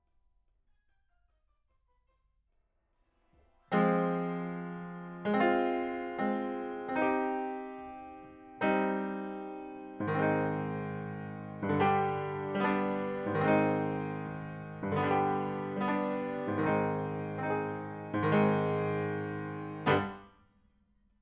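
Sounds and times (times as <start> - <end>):
piano: 3.4 - 20.4.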